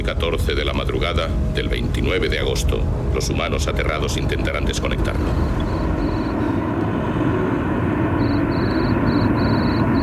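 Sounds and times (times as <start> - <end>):
steady low rumbling noise: 0.0 - 10.0
speech: 0.1 - 5.9
cricket chirping outdoors: 8.2 - 10.0.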